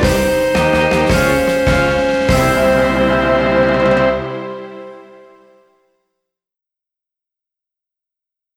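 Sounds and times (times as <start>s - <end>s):
instrumental anthem: 0.0s - 5.7s.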